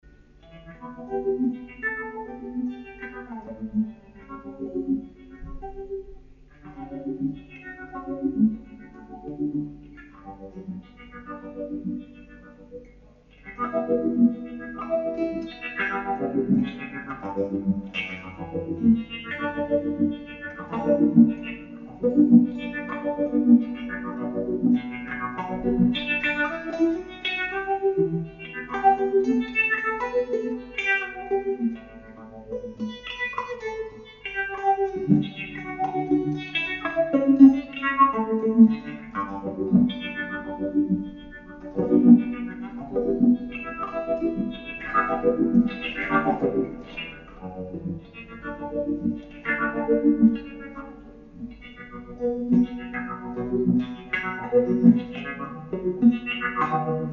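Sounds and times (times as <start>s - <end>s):
Moog synthesizer: 0.0s - 57.1s.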